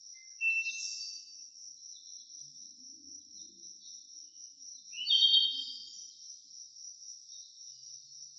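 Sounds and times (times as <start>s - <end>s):
crickets chirping: 0.0s - 8.3s.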